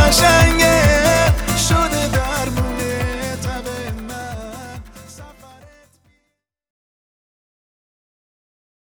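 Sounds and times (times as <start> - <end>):
Persian singer singing: 0.0 - 5.8.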